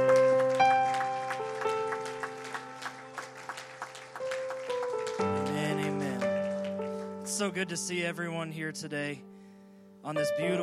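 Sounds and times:
audience clapping hands: 0.0 - 7.3
held organ or keyboard chords: 0.0 - 10.6
speech: 7.4 - 9.3, 10.0 - 10.6.

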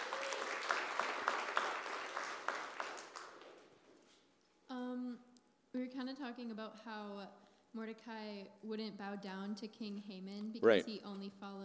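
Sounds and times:
audience clapping: 0.0 - 3.8
speech: 6.3 - 11.6.

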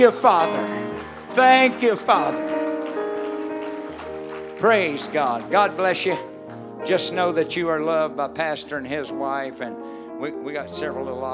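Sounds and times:
speech: 0.0 - 2.5, 4.6 - 11.3
audience clapping hands: 0.0 - 7.6.

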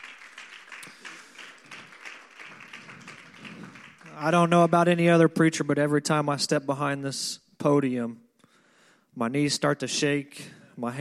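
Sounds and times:
audience hand clapping: 0.0 - 5.4
speech: 4.2 - 8.2, 9.2 - 10.9.

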